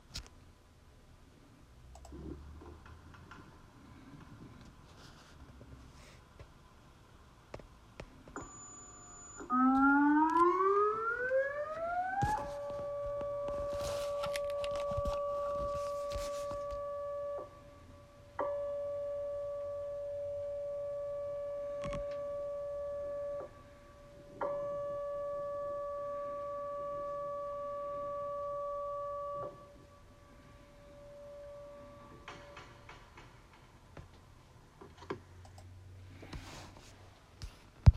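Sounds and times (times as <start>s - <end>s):
emergency management siren: 9.4s - 17.8s, 18.4s - 23.8s, 24.4s - 32.4s.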